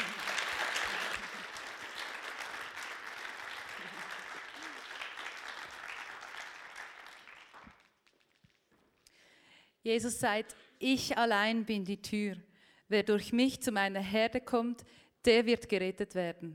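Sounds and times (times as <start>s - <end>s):
audience applause: 0.0s - 8.2s
speech: 9.8s - 16.5s.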